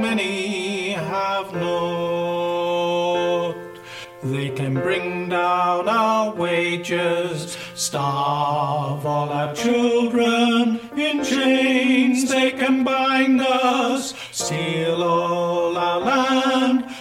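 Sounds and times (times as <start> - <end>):
tenor singing: 0.0 - 17.0.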